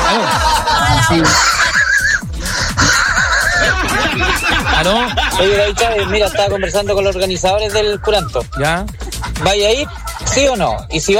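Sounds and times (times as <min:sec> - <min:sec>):
person imitating a laughing dog: 0:00.0 - 0:11.0
speech: 0:01.1 - 0:01.5, 0:04.8 - 0:11.1.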